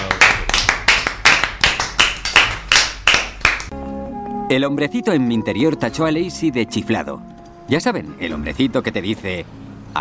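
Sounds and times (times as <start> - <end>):
applause: 0.0 - 3.7
speech: 4.5 - 9.9.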